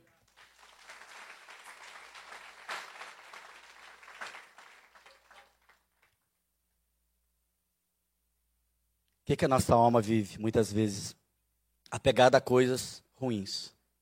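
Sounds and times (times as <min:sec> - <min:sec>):
audience applause: 0:00.0 - 0:06.2
speech: 0:09.3 - 0:11.2, 0:11.9 - 0:13.8.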